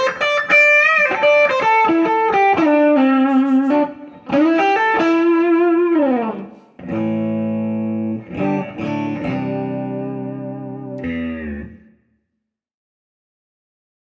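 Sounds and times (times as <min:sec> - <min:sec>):
clean pushing amp tone: 0:01.0 - 0:12.2.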